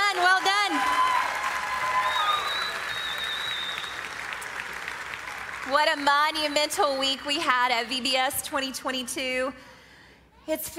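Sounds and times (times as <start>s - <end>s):
crowd applauding: 0.0s - 7.1s
speech: 5.7s - 9.7s, 10.4s - 10.7s.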